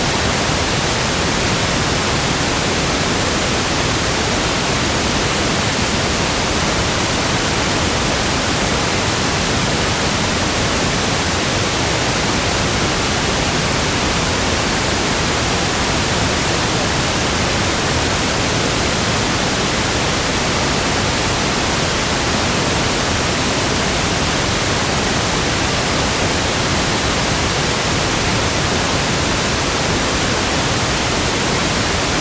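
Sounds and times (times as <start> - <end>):
pink noise: 0.0 - 32.1.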